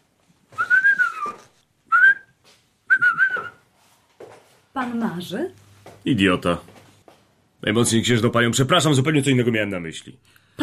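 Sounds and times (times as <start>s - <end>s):
person whistling: 0.5s - 3.6s
speech: 4.8s - 6.7s, 7.6s - 10.6s.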